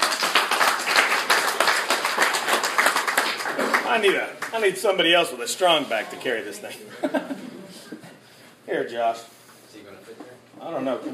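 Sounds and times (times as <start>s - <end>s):
audience applause: 0.0s - 4.5s
speech: 3.9s - 7.5s, 8.7s - 11.1s
laughter: 6.8s - 8.2s.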